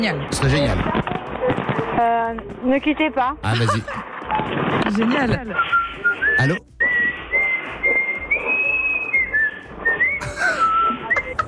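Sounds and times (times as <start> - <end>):
speech: 0.0 - 6.7
laughter: 3.4 - 4.1, 10.2 - 11.4
person whistling a melody into a microphone: 5.6 - 11.4.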